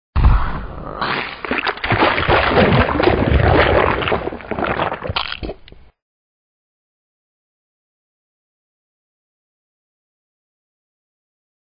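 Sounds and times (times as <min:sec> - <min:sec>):
splat: 0:01.0 - 0:05.6.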